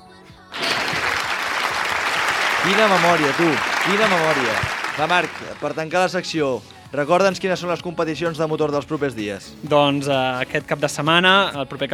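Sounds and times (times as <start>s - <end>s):
applause sound effect on a radio show in honour of a guest: 0.5s - 6.0s
speech: 2.6s - 11.9s.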